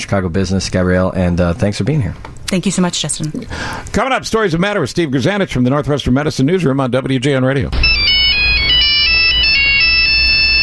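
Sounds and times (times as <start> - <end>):
speech: 0.0 - 8.1
cell phone ringtone: 7.8 - 10.6.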